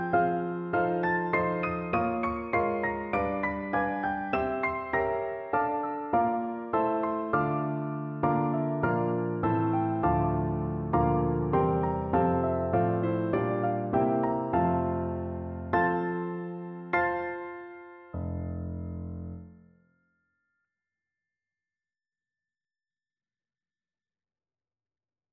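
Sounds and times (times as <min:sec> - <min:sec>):
four-hands piano duet: 0:00.0 - 0:19.6.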